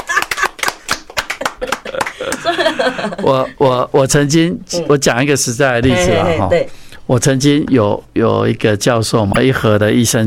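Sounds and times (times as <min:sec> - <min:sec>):
hand clapping: 0:00.0 - 0:02.4
speech: 0:01.4 - 0:10.2.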